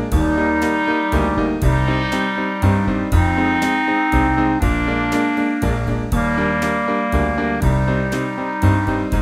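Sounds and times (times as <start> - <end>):
clarinet: 0.2 - 9.2.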